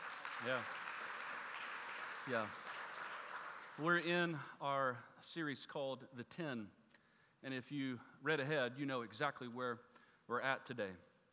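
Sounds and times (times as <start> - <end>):
crowd applause: 0.0 - 4.0
speech: 0.4 - 0.8, 2.3 - 2.7, 3.8 - 6.8, 7.4 - 11.1.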